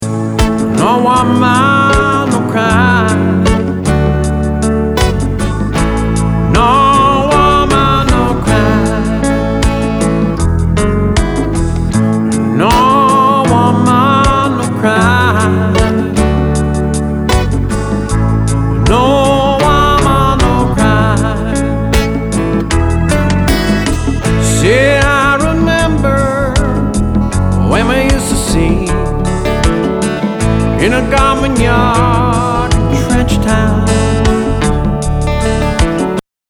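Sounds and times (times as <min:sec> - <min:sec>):
blues ballad: 0:00.0 - 0:36.2.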